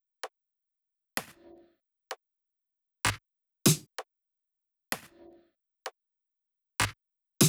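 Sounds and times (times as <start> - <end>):
drums: 3.1 - 3.9, 6.8 - 7.4.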